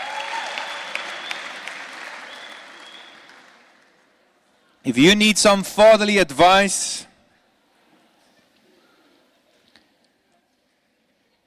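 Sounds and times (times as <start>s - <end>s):
audience applause for volunteers on stage: 0.0s - 4.2s
speech: 4.8s - 7.1s.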